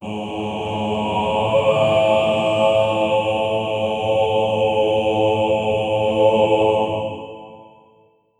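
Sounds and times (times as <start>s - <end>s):
intimidating angelic choir: 0.0s - 8.1s.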